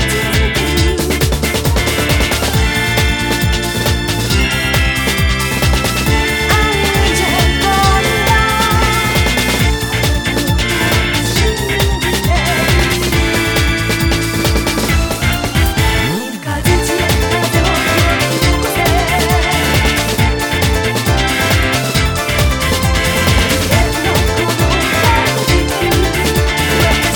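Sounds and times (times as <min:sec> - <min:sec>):
karaoke backing track: 0:00.0 - 0:27.1.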